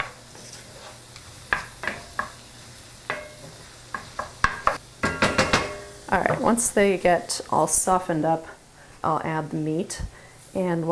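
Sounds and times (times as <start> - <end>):
utensil scraping and stirring onions in a pan: 0.0 - 2.4
onions sizzling in a pan: 0.0 - 8.5
speech: 6.1 - 10.8.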